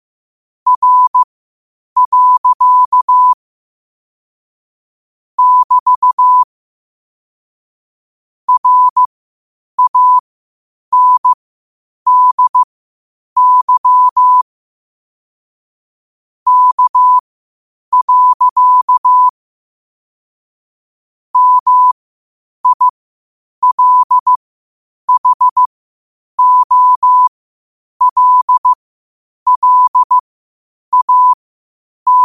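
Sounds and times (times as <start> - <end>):
morse code at 5 wpm: 0.7 - 1.3, 2.0 - 3.4, 5.4 - 6.5, 8.5 - 9.1, 9.8 - 10.2, 10.9 - 11.4, 12.1 - 12.7, 13.4 - 14.4, 16.5 - 17.2, 17.9 - 19.3, 21.4 - 22.0, 22.6 - 22.9, 23.6 - 24.4, 25.1 - 25.7, 26.4 - 27.3, 28.0 - 28.8, 29.5 - 30.2, 30.9 - 31.4, 32.1 - 32.2.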